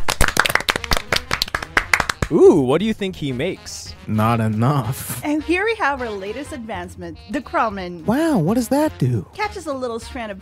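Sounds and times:
small group of people applauding: 0.0 - 2.6
speech: 2.3 - 10.4.

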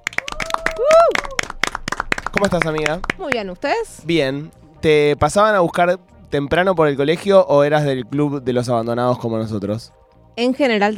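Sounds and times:
applause, hands clapping: 0.0 - 3.5
speech: 2.3 - 10.9.

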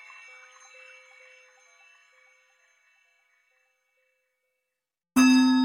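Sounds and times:
struck Tibetan bowl ringing: 5.2 - 5.6.

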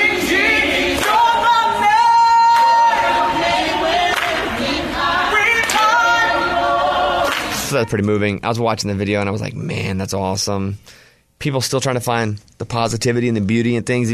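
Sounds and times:
crowd singing along: 0.0 - 7.8
crowd clapping: 1.0 - 1.2, 4.1 - 4.4, 5.6 - 5.9, 7.3 - 7.5
speech: 7.7 - 14.1.

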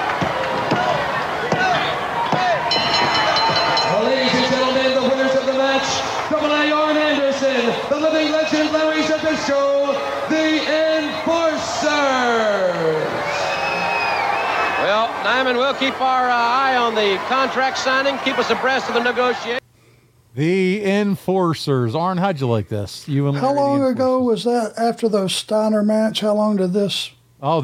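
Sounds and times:
large crowd oohing and aahing: 0.0 - 19.6
speech: 15.3 - 19.6, 20.4 - 27.6.

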